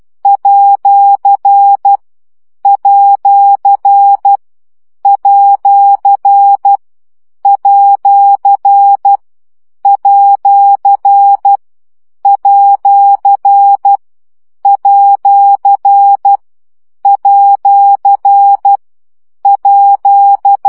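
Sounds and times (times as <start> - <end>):
morse code practice beeps at 10 baud: 0.2 - 2.0, 2.6 - 4.4, 5.0 - 6.8, 7.4 - 9.2, 9.8 - 11.6, 12.2 - 14.0, 14.6 - 16.4, 17.0 - 18.8, 19.4 - 20.6.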